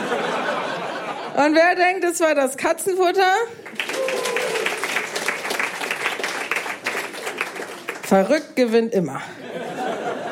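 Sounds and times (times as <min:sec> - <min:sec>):
laughter: 0:00.0 - 0:01.4, 0:09.3 - 0:10.3
speech: 0:01.4 - 0:03.8, 0:08.1 - 0:09.7
audience clapping to vote: 0:03.6 - 0:08.6.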